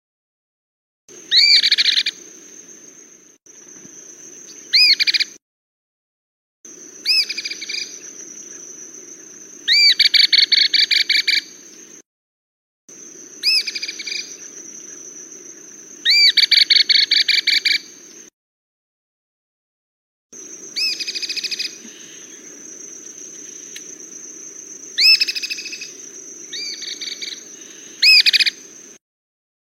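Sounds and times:
cliff flycatcher calling: 1.1s - 5.4s, 6.7s - 12.0s, 12.9s - 18.3s, 20.4s - 29.0s.

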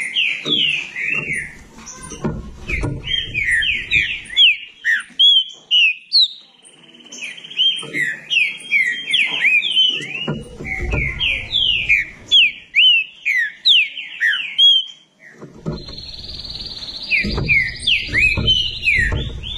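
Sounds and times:
low knocks: 0.4s - 4.5s, 10.3s - 12.4s, 15.4s - 19.5s
green-winged saltator song: 2.6s - 19.5s.

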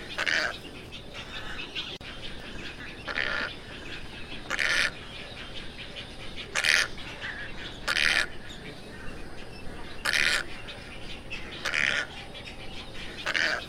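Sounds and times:
tricolored heron squawks: 0.0s - 13.6s.

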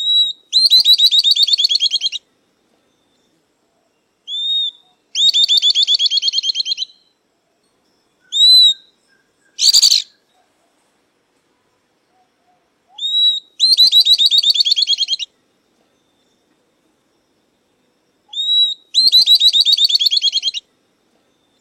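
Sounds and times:
southern beardless-tyrannulet song: 0.0s - 2.2s, 4.3s - 7.1s, 8.3s - 10.3s, 12.9s - 15.3s, 18.3s - 20.6s.

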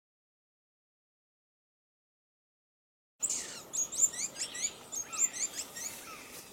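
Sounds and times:
dusky-throated hermit thin squeaky notes: 3.2s - 6.4s.

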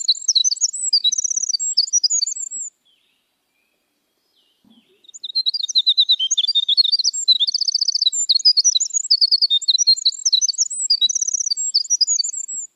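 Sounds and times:
Eurasian skylark singing: 0.0s - 2.7s, 4.7s - 12.7s.

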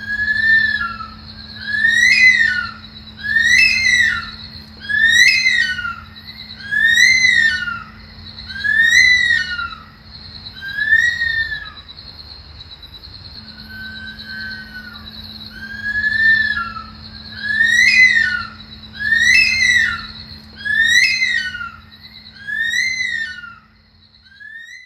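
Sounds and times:
Senegal thick-knee singing: 0.0s - 11.9s, 13.5s - 24.8s.

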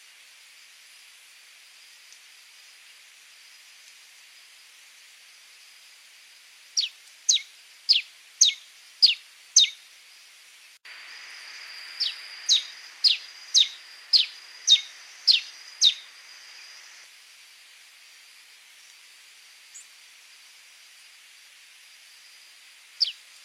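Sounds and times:
red-crested soldier bird singing: 6.8s - 9.8s, 11.3s - 17.0s.

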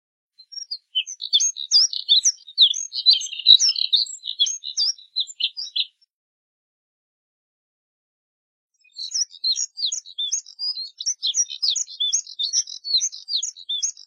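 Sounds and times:
Moussier's redstart twittering warble: 0.4s - 6.0s, 8.8s - 14.0s.

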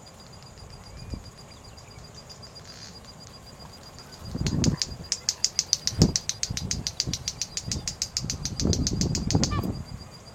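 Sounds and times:
white-bellied seedeater song: 4.0s - 9.8s.

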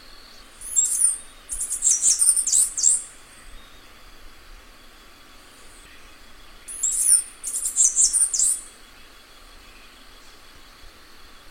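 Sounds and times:
bamboo cicada song: 0.0s - 11.4s.

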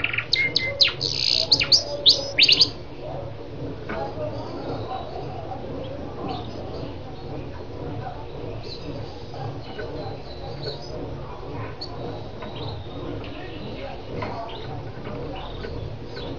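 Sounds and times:
Lancashire canary song: 0.0s - 16.3s.

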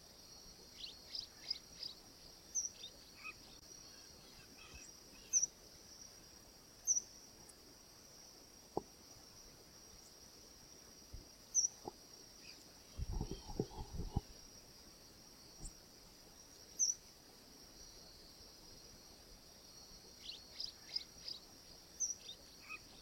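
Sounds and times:
freirinha bird singing: 0.7s - 5.6s, 6.9s - 7.1s, 11.5s - 14.3s, 16.6s - 17.0s, 20.1s - 22.9s.

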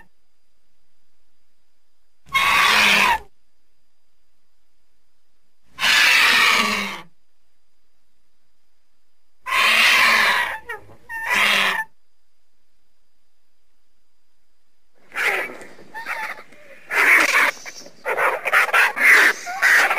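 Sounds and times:
vulture hissing: 2.3s - 3.2s, 5.7s - 7.1s, 9.5s - 11.9s, 15.0s - 19.9s.

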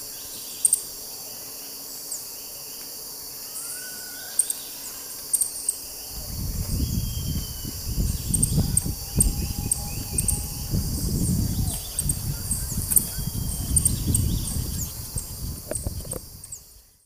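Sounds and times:
upturned-bill hummingbird singing: 3.4s - 17.0s.

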